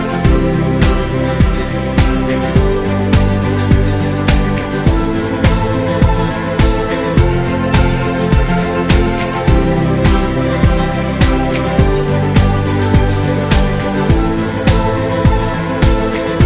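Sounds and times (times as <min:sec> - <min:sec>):
guitar: 0:00.0 - 0:16.4
piano: 0:00.0 - 0:16.4.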